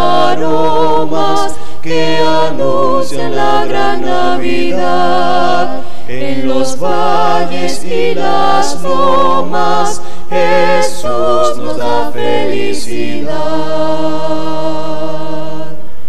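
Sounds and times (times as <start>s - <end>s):
a cappella Latin Christmas hymn singing: 0.0s - 16.0s.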